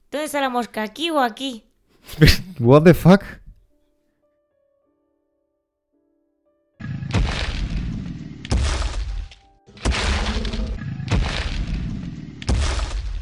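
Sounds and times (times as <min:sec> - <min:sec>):
speech: 0:00.2 - 0:03.4
heavy booming footsteps: 0:07.1 - 0:13.2.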